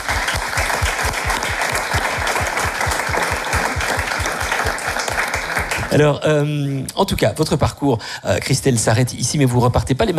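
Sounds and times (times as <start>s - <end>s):
audience applause: 0.0s - 6.1s
speech: 5.9s - 10.1s.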